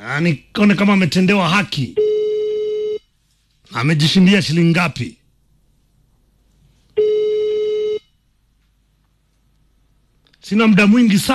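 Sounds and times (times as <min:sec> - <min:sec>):
speech: 0:00.0 - 0:02.0, 0:03.7 - 0:05.2, 0:10.5 - 0:11.3
telephone ring tone as a radio host phones a listener on air: 0:02.0 - 0:03.0, 0:07.0 - 0:08.1.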